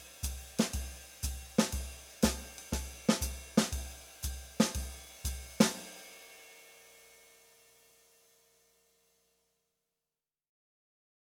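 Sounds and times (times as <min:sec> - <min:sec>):
slow bop drumming: 0:00.0 - 0:06.1.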